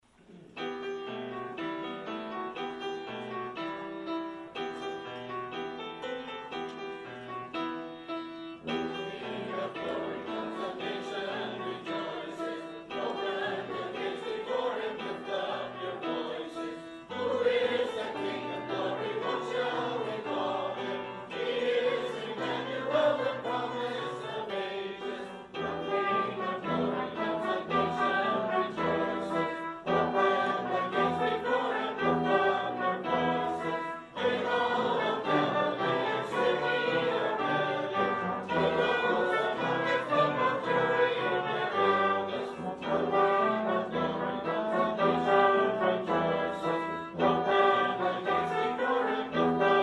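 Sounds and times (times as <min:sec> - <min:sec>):
piano: 0:00.0 - 0:49.8
brass instruments: 0:00.1 - 0:49.8.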